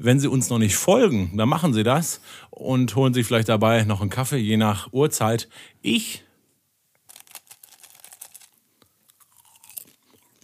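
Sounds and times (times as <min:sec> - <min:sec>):
speech: 0:00.0 - 0:06.3
chewing popcorn: 0:07.1 - 0:10.4.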